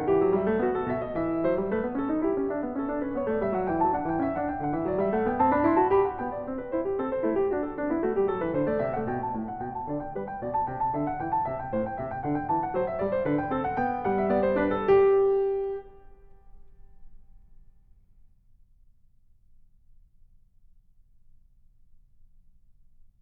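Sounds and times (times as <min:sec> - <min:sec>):
baroque dance piece: 0:00.0 - 0:16.0.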